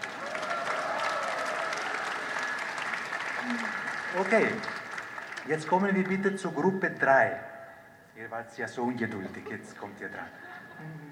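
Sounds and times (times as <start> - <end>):
audience applause: 0.0 - 6.7
speech: 3.5 - 4.8, 5.5 - 7.5, 8.2 - 11.0.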